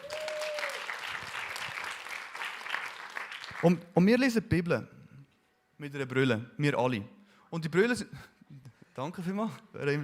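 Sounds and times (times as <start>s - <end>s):
audience applause: 0.0s - 3.7s
speech: 3.6s - 5.0s, 5.8s - 8.3s, 9.0s - 10.0s.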